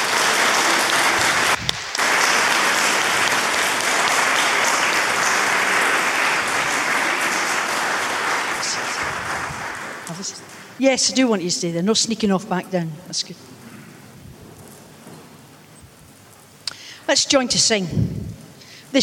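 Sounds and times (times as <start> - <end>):
audience applause: 0.0 - 10.8
speech: 10.8 - 13.5, 17.1 - 18.3.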